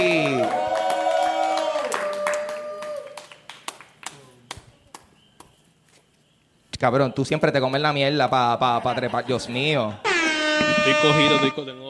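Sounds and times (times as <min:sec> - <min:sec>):
audience applause: 0:00.0 - 0:03.9
speech: 0:06.8 - 0:10.1, 0:10.9 - 0:11.8.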